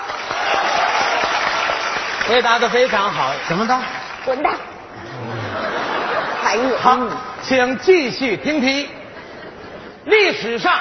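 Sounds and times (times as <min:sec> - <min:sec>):
crowd clapping: 0:00.0 - 0:04.8
speech: 0:02.3 - 0:04.7, 0:06.5 - 0:09.0, 0:10.1 - 0:10.7
laughter: 0:05.0 - 0:07.2, 0:08.9 - 0:10.5.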